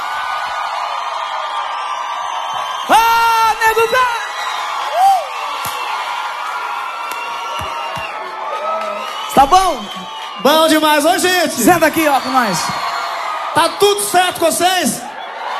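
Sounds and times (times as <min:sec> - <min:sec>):
crowd roaring and whooping: 0:00.0 - 0:15.5
speech: 0:03.8 - 0:04.2, 0:09.4 - 0:12.9, 0:13.6 - 0:15.1.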